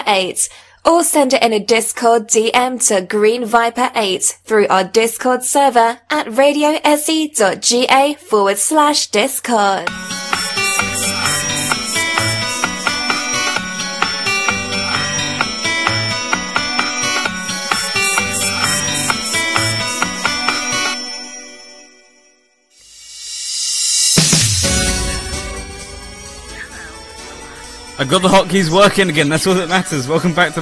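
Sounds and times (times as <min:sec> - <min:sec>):
speech: 0:00.0 - 0:10.2, 0:28.0 - 0:30.5
synthesized video game music, ending theme in Sega 32X version: 0:09.9 - 0:22.2, 0:24.0 - 0:30.5.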